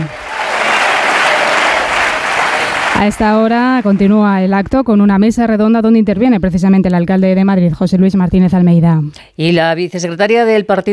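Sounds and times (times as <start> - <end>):
applause at political rally: 0.0 - 4.3
cheering at political rally: 0.0 - 4.5
speech: 3.0 - 10.9.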